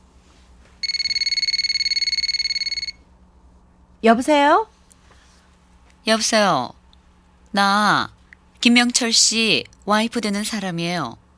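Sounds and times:
telephone ringing: 0.8 - 3.0
speech: 4.0 - 4.7, 6.0 - 6.8, 7.5 - 11.2.

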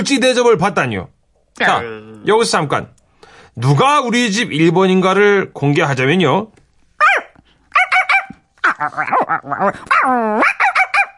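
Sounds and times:
speech: 0.0 - 3.0, 3.6 - 6.6, 8.8 - 10.6
pet dog barking: 7.0 - 8.4, 9.9 - 11.1.

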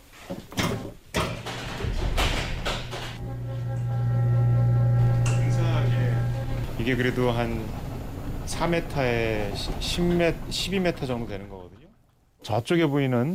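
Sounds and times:
observatory roof knocks and clunks: 0.2 - 3.9, 4.9 - 12.2
amateur observatory roof motor hum: 3.1 - 12.4
speech: 6.9 - 7.9, 8.5 - 11.6, 12.4 - 13.3.

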